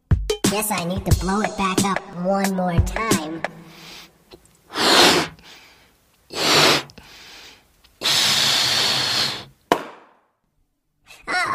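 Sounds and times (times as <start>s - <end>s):
speech: 0.5s - 4.0s
balloon popping: 4.7s - 5.4s, 8.0s - 10.3s.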